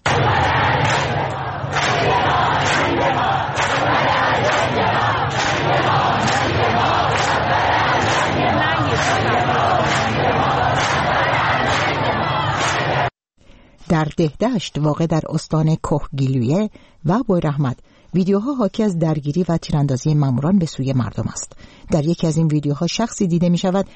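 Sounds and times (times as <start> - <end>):
crowd chanting protest slogans in the street: 0.0 - 13.2
speech: 14.0 - 23.9.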